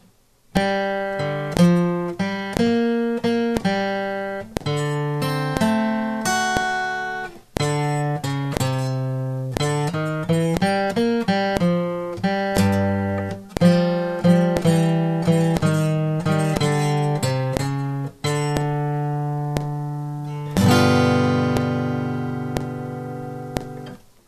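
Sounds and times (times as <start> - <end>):
blues play-along music: 0.0 - 24.2.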